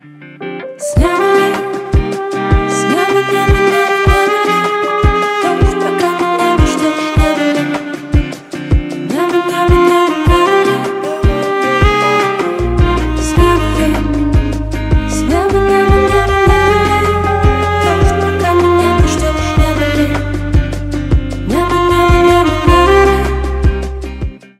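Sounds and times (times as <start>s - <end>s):
saxophone cover: 0.4s - 24.5s.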